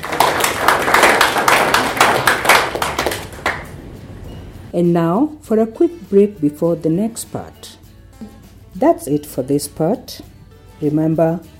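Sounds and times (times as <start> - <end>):
clapping: 0.0 - 3.8
speech: 4.7 - 7.8, 8.8 - 11.5.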